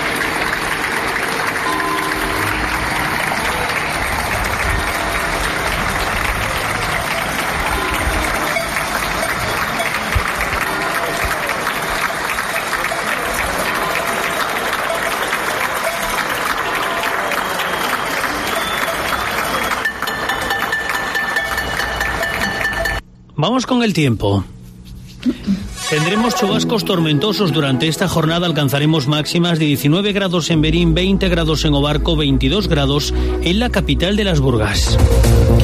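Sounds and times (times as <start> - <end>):
applause from balconies for health workers: 0.0 - 23.0, 25.8 - 29.2
speech: 23.5 - 24.6, 25.9 - 35.5.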